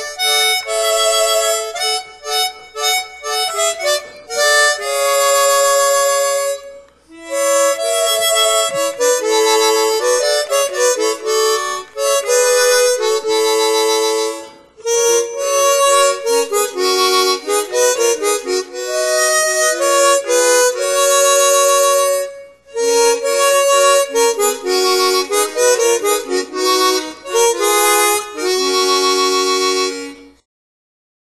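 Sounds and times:
chromatic harmonica melody: 0:00.0 - 0:30.5.

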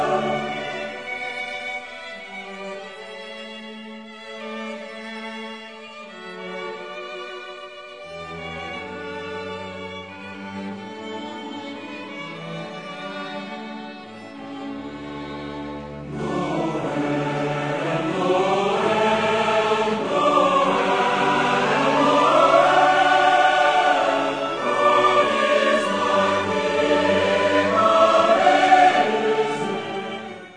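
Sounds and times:
choir singing hymns: 0:00.0 - 0:02.2, 0:15.4 - 0:30.5
orchestra playing hymns: 0:00.0 - 0:30.5.

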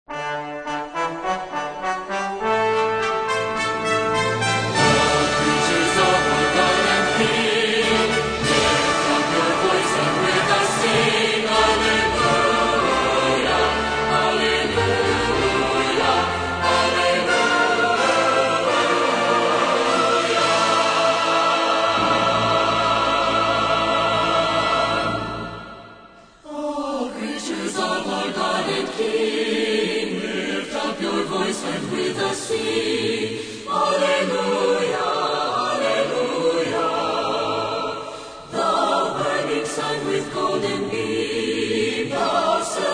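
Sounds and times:
orchestra playing: 0:00.1 - 0:26.1
choir singing: 0:00.8 - 0:42.9.

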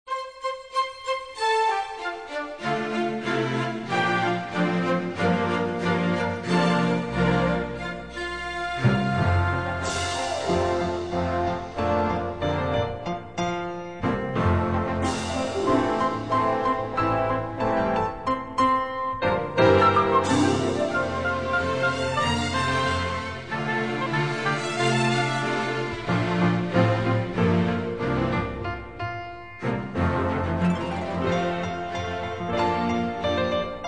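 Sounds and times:
Christmas string music: 0:00.0 - 0:33.8.

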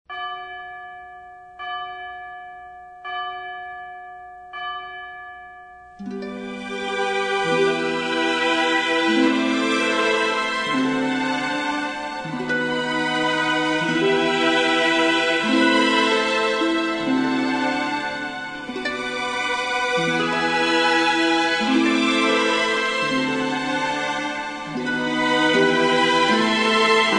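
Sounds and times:
orchestral strings: 0:06.0 - 0:27.1.

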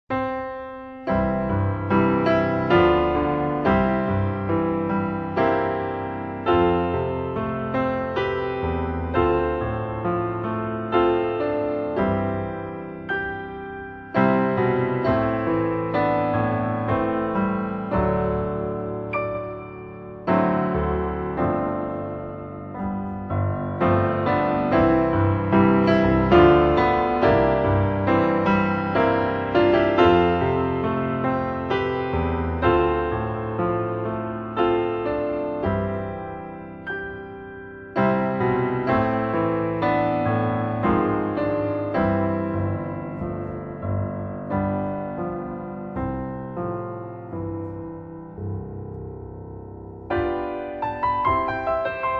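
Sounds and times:
keyboard: 0:00.0 - 0:52.1.

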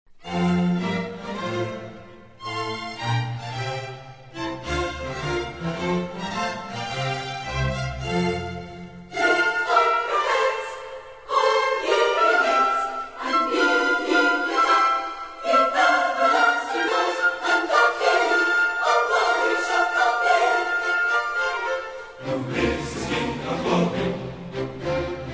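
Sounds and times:
orchestra playing: 0:00.2 - 0:25.3
choir singing: 0:08.0 - 0:25.3.

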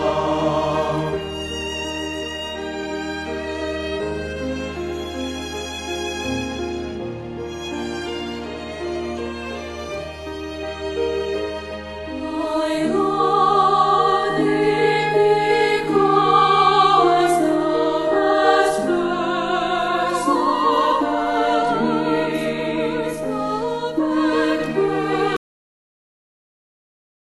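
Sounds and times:
choir singing a hymn: 0:00.0 - 0:04.1, 0:12.0 - 0:25.4
orchestra: 0:00.0 - 0:25.4.

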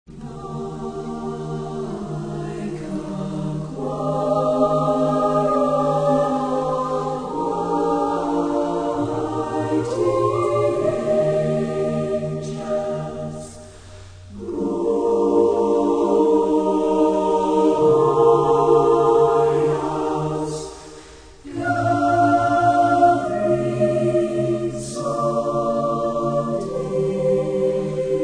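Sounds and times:
choir singing: 0:00.1 - 0:28.2.

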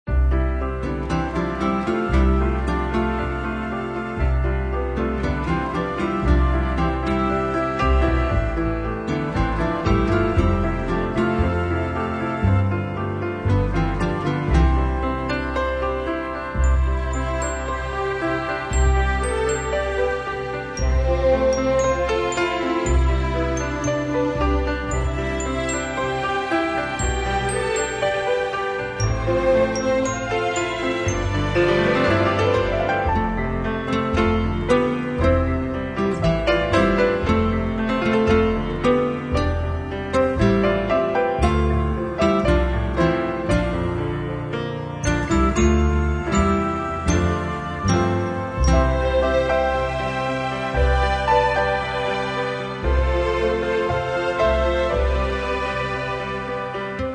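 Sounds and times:
orchestral strings: 0:00.1 - 0:57.1.

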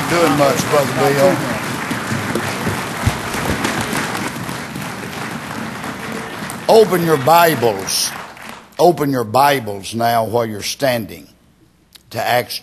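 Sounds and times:
audience applause: 0:00.0 - 0:08.7
speech: 0:00.1 - 0:01.6, 0:06.7 - 0:08.0, 0:08.8 - 0:11.3, 0:12.1 - 0:12.6.

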